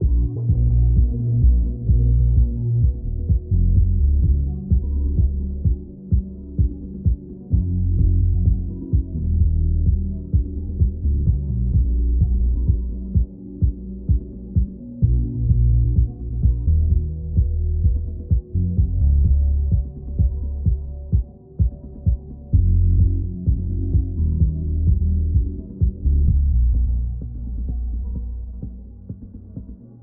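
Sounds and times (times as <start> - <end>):
music: 0.0 - 30.0.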